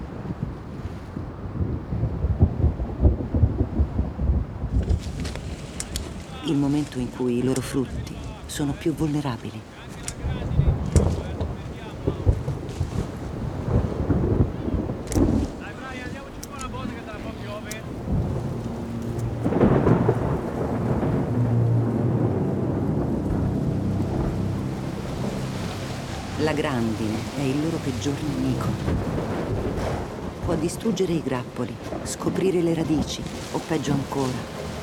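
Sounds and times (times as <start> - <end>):
gusty wind: 0.0 - 34.8
thunder rumbling in a thunderstorm: 0.0 - 34.8
steady hissing rain: 4.6 - 31.3, 32.6 - 34.8
speech: 6.5 - 9.8, 26.6 - 29.3, 30.5 - 34.6.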